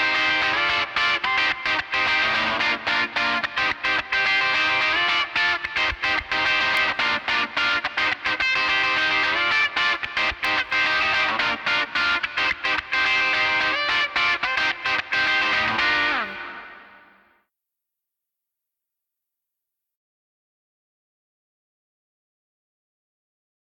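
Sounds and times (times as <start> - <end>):
guitar: 0.0 - 17.4.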